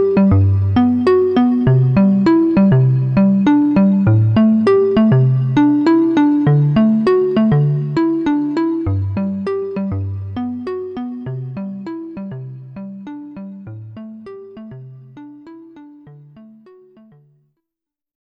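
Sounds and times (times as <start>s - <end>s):
pulse bell tone on a synthesizer: 0.0s - 17.1s.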